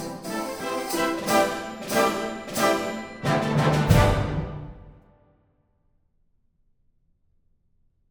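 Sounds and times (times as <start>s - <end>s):
orchestra playing a waltz: 0.0s - 5.0s.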